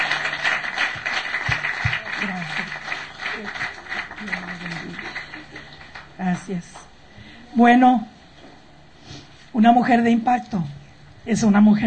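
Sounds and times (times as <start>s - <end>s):
audience applause: 0.0s - 6.2s
speech: 6.5s - 6.8s, 7.6s - 8.1s, 9.6s - 11.8s.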